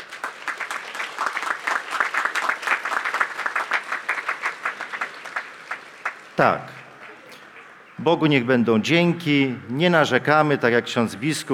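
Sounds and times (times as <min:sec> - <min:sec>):
audience applause: 0:00.0 - 0:07.6
speech: 0:06.4 - 0:06.8, 0:08.0 - 0:11.5.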